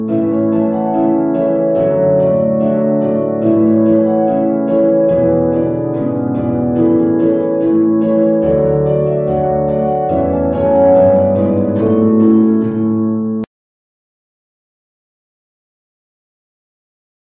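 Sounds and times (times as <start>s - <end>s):
harp ensemble playing a traditional folk tune: 0.0s - 13.5s.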